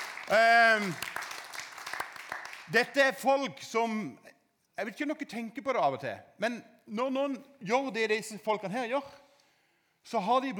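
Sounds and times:
scattered faint handclaps from a small group of youths: 0.0 - 3.1
speech: 0.3 - 1.2, 2.7 - 9.2, 10.0 - 10.5.

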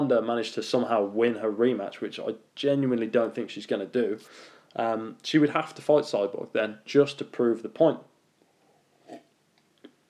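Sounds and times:
speech: 0.1 - 8.1
person slurping a drink of water: 9.0 - 9.3.

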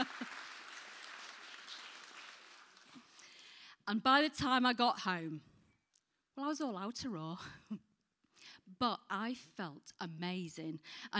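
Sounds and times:
crowd clapping: 0.0 - 3.4
speech: 3.9 - 5.5, 6.4 - 7.8, 8.8 - 11.1.

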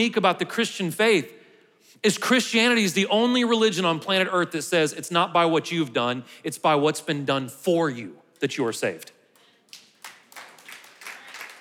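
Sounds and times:
speech: 0.0 - 9.2
scattered hand claps in a reverberant room: 9.4 - 11.5.

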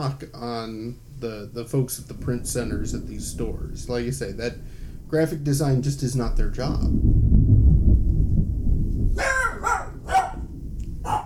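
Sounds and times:
speech: 0.0 - 7.1
thunder rumble: 0.0 - 11.2
frightened dog barking: 9.2 - 11.2.

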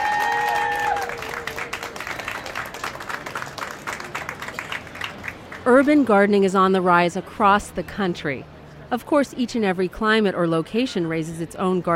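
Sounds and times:
audience applause: 0.0 - 5.6
speech: 5.7 - 11.9.

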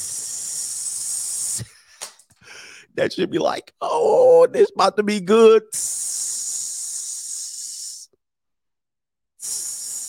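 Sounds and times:
voice imitating a firecracker fizzling out: 0.0 - 1.7, 5.7 - 8.1, 9.4 - 10.0
speech: 3.0 - 6.1.

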